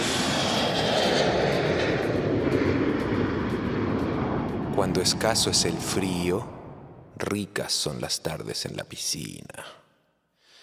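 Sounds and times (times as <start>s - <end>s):
airplane taking off: 0.0s - 8.0s
speech: 4.9s - 6.6s, 7.2s - 9.8s.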